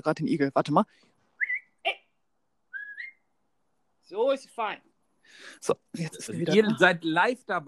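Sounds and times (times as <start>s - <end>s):
speech: 0.0s - 1.1s, 4.1s - 7.6s
person whistling to call a dog back: 1.4s - 1.8s, 2.7s - 3.3s.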